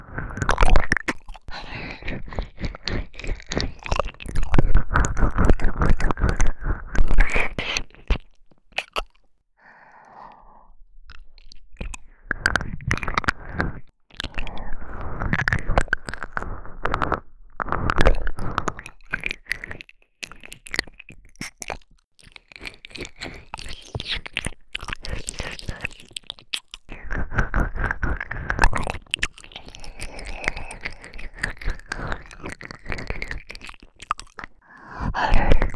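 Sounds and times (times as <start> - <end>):
ear licking in the right ear: 0.0 - 9.3, 11.1 - 20.4, 22.3 - 35.7.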